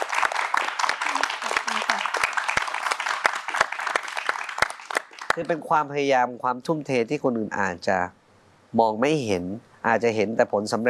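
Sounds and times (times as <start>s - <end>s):
audience applause: 0.0s - 5.6s
speech: 5.4s - 10.8s.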